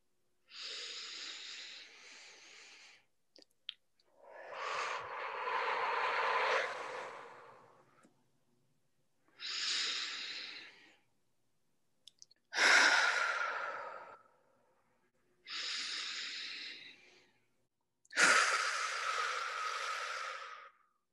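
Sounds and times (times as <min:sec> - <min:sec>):
deep slow breaths taken as a group exercise: 0:00.5 - 0:03.1, 0:04.1 - 0:08.1, 0:09.3 - 0:11.1, 0:12.5 - 0:14.9, 0:15.5 - 0:21.0.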